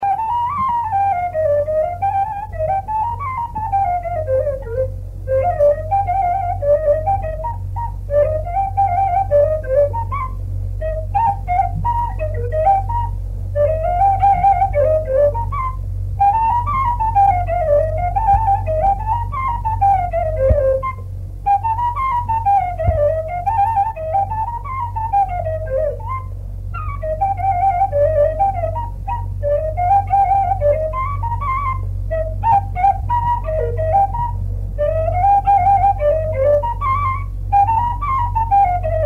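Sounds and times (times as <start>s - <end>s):
flute playing: 0.0s - 39.0s.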